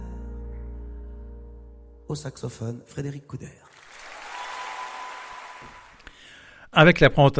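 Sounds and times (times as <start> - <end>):
speech: 2.1 - 3.7, 6.8 - 7.3
audience applause in theatre: 3.7 - 6.2.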